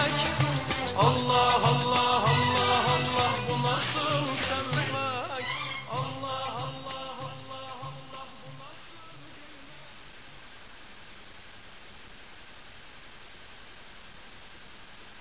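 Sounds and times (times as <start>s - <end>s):
song: 0.0s - 9.8s.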